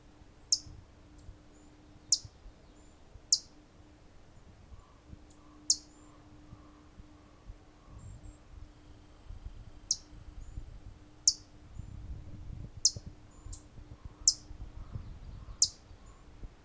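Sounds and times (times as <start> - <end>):
Blackpoll Warbler Setophaga striata: 0.4 - 3.7, 4.4 - 9.1, 9.8 - 12.0, 12.8 - 16.3.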